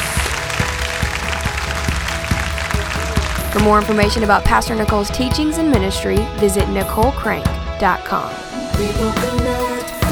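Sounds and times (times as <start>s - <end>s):
congregation hand clap of praise: 0.0s - 4.4s
low thudding beat: 0.0s - 8.2s, 8.8s - 10.1s
speech: 3.6s - 9.6s.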